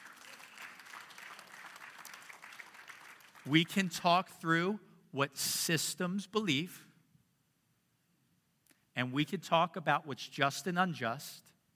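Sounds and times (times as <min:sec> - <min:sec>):
audience applause: 0:00.0 - 0:03.5
speech: 0:03.4 - 0:06.9, 0:09.0 - 0:11.5.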